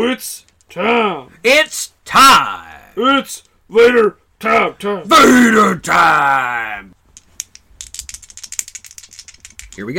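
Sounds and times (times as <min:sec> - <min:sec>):
speech: 0:00.1 - 0:07.0, 0:09.8 - 0:09.9
dice being rolled: 0:07.1 - 0:09.9.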